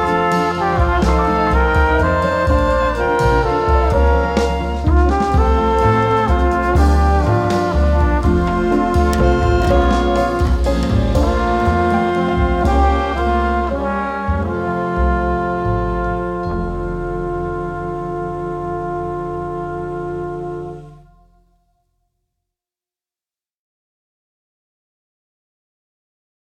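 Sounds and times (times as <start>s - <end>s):
swing band playing a folk song: 0.0s - 21.0s.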